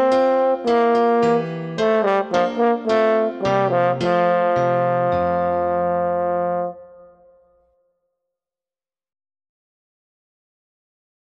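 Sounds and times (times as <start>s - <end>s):
horn march solo: 0.0s - 7.6s
piano accompaniment: 0.0s - 7.7s.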